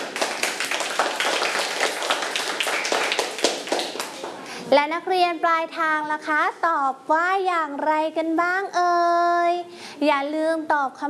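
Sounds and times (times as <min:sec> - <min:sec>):
group of children clapping for a classmate: 0:00.0 - 0:04.5
speech: 0:04.7 - 0:11.0.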